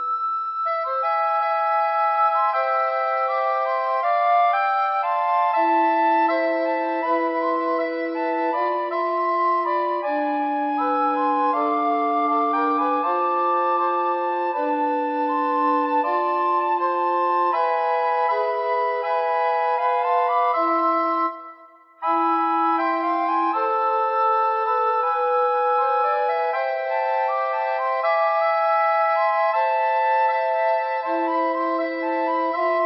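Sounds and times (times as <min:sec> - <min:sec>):
recorder quartet playing: 0:00.0 - 0:32.8.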